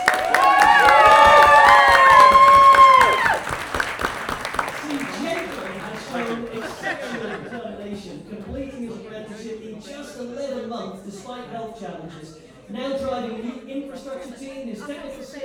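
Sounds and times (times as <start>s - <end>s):
cheering: 0.0s - 7.2s
round of applause: 0.0s - 7.3s
laughter: 4.6s - 8.3s.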